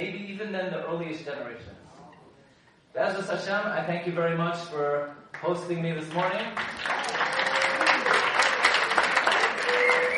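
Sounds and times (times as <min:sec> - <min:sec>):
speech: 0:00.0 - 0:01.8, 0:02.9 - 0:07.2
audience clapping: 0:05.3 - 0:10.1.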